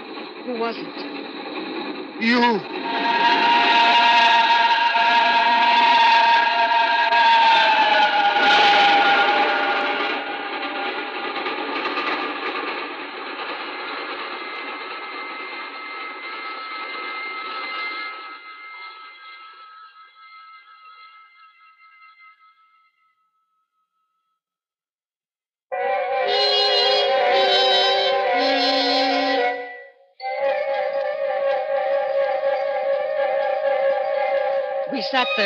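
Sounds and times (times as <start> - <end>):
train roaring past on rails: 0.0 - 18.2, 25.7 - 35.4
speech: 0.5 - 1.6, 2.2 - 4.1, 35.2 - 35.4
train horn blasts: 2.8 - 10.5, 25.7 - 35.4.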